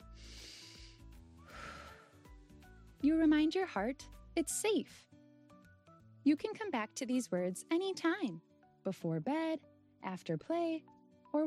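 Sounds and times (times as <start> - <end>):
slow calming breath during a soothing exercise for children: 0.0 - 2.6
speech: 3.0 - 5.1, 6.3 - 11.4.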